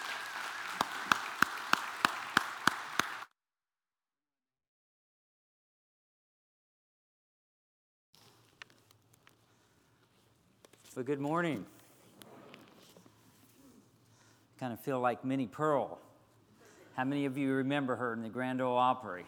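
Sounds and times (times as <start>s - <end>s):
church congregation applauding to welcome a speaker: 0.0s - 3.3s
speech: 11.0s - 11.8s, 14.6s - 16.1s, 17.0s - 19.2s.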